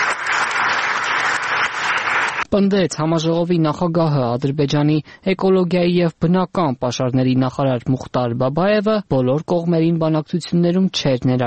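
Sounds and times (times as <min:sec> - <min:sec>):
applause after a speech at an international climate conference: 0:00.0 - 0:02.5
speech: 0:02.5 - 0:11.4.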